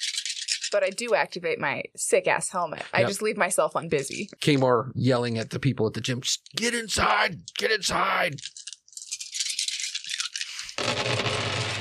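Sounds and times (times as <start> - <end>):
dice rattling and tumbling together: 0.0 - 0.8, 8.3 - 11.6
speech: 0.7 - 8.7.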